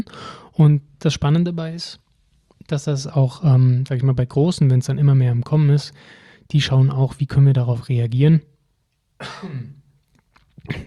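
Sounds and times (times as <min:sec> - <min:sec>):
speech: 0:00.0 - 0:02.0, 0:02.7 - 0:08.5, 0:09.2 - 0:09.8
person with a cold coughing: 0:09.2 - 0:09.9, 0:10.6 - 0:10.8.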